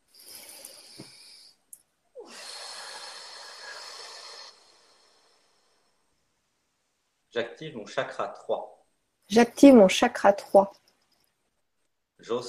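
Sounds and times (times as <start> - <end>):
person breathing deeply: 0.0 - 6.2
speech: 7.4 - 10.8, 12.2 - 12.4.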